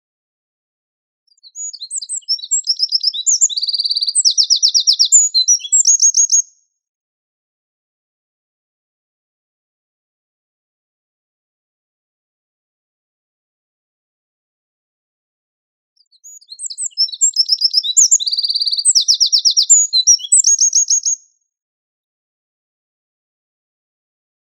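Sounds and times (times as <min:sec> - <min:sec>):
Eurasian wren song: 0:01.3 - 0:06.7, 0:16.0 - 0:21.4.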